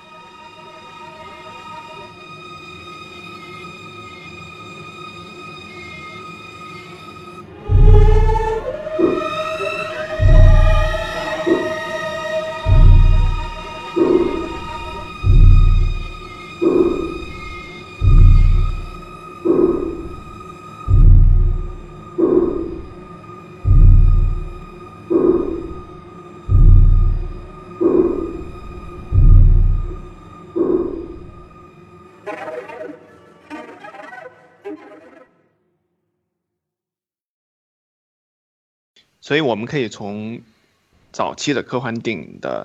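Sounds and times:
avant-garde distorted film score strings: 0:07.4 - 0:35.4
speech: 0:39.3 - 0:42.6.

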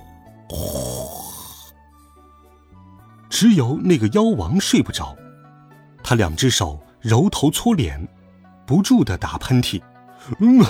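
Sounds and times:
speech: 0:00.5 - 0:00.8, 0:03.4 - 0:05.2, 0:06.1 - 0:10.6
loud rasping snore: 0:00.5 - 0:01.7.

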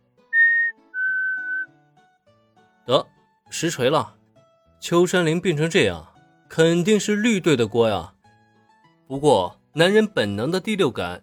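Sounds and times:
person whistling a tune: 0:00.4 - 0:01.7
speech: 0:02.9 - 0:04.2, 0:04.8 - 0:08.2, 0:09.1 - 0:11.2.

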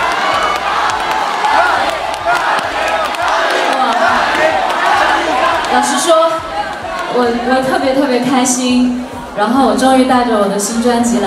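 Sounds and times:
fans singing along at live concert: 0:00.0 - 0:08.3
speech: 0:07.2 - 0:11.2.

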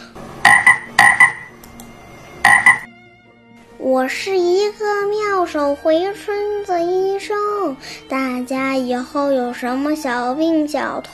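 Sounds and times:
frog croaking: 0:00.4 - 0:01.5, 0:02.4 - 0:02.9
speech: 0:03.9 - 0:11.1.

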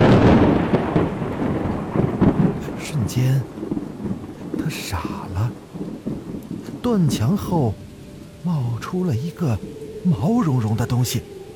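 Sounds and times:
rain-like hiss: 0:00.0 - 0:11.5
thunder clap: 0:00.0 - 0:11.5
speech: 0:06.9 - 0:07.8, 0:08.4 - 0:11.4.

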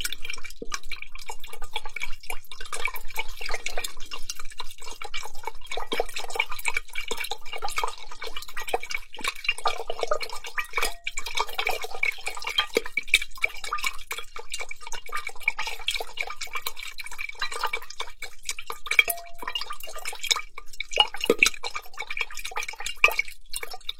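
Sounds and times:
carbonated water fizzing in a large glass bowl: 0:00.0 - 0:23.9
glassy pings: 0:19.0 - 0:19.7.

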